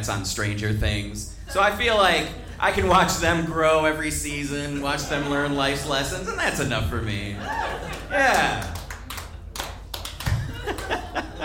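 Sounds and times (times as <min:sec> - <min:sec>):
speech: 0:00.0 - 0:08.8
laughter: 0:04.4 - 0:09.0, 0:10.3 - 0:11.4
audience applause: 0:07.5 - 0:11.4.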